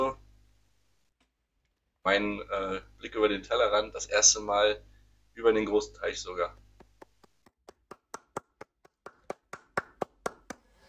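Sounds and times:
speech: 2.0s - 6.6s
single person clapping hands in a steady rhythm: 6.8s - 10.8s.

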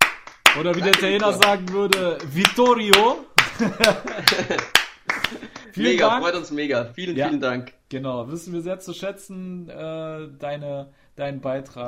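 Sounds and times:
applause: 0.0s - 6.2s
speech: 0.6s - 11.8s
laughter: 3.4s - 6.1s.

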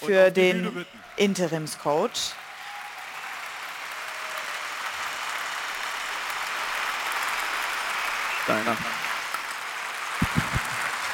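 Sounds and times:
speech: 0.0s - 2.4s, 8.5s - 9.0s
thunderous applause from a large crowd: 0.7s - 11.1s.

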